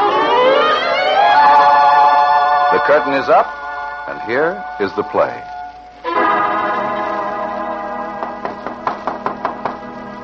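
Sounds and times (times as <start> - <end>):
sustained musical chord: 0.0 - 8.6
speech: 2.8 - 5.6
knocking on a door: 8.2 - 9.9.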